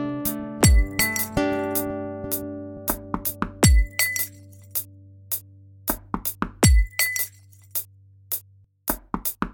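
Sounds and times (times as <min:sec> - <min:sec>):
guitar: 0:00.0 - 0:05.1.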